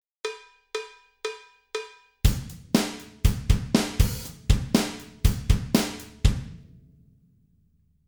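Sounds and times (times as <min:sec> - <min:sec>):
drum: 0:01.8 - 0:07.0.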